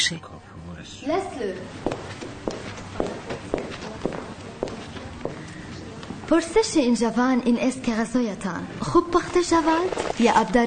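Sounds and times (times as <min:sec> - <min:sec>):
hum: 0:00.0 - 0:10.6
speech: 0:00.1 - 0:02.2, 0:06.3 - 0:10.6
footsteps of café owner approaching: 0:01.6 - 0:06.2, 0:09.2 - 0:10.6.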